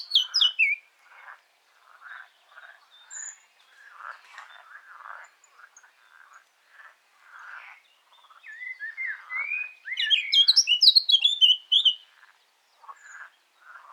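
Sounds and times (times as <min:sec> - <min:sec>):
Eurasian blackcap Sylvia atricapilla song: 0:00.0 - 0:00.8, 0:08.6 - 0:12.0.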